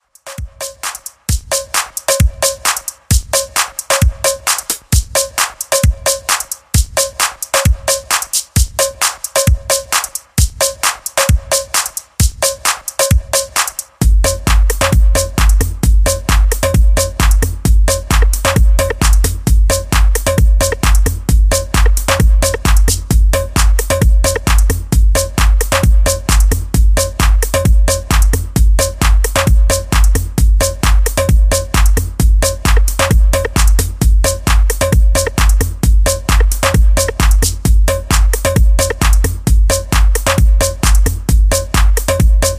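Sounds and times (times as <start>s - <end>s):
music beat: 0.0s - 42.5s.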